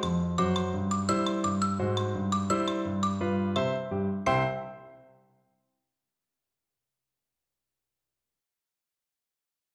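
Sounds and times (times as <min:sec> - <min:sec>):
percussion: 0:00.0 - 0:03.8
xylophone playing rag: 0:00.0 - 0:04.8.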